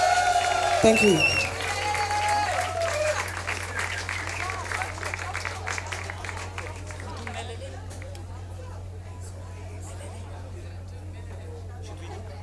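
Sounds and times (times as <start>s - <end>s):
audience applause: 0.0s - 8.1s
speech: 0.8s - 1.3s.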